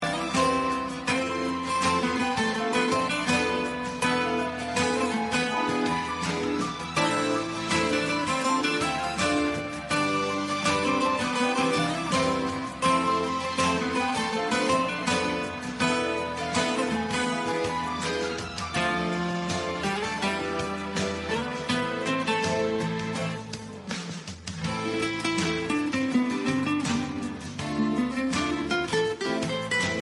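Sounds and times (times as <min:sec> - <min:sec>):
background music: 0:00.0 - 0:30.0.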